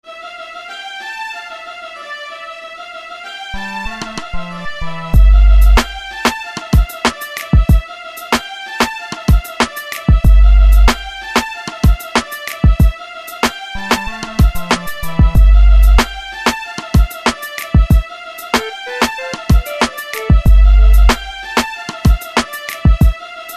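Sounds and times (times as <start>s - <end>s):
music beat: 5.2s - 7.8s, 9.2s - 13.0s, 14.0s - 23.2s.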